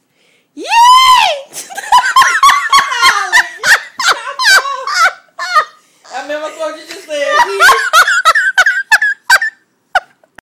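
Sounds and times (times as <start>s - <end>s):
person laughing: 1.6s - 5.8s, 7.2s - 10.4s.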